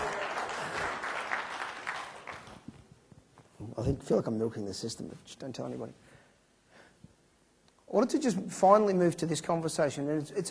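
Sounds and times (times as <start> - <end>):
audience applause: 0.0 - 2.6
speech: 3.8 - 6.1, 7.9 - 10.4.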